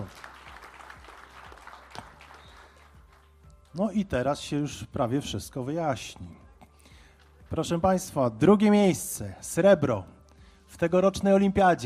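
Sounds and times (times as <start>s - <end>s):
audience applause: 0.0s - 3.3s
speech: 3.8s - 6.4s, 7.5s - 11.8s.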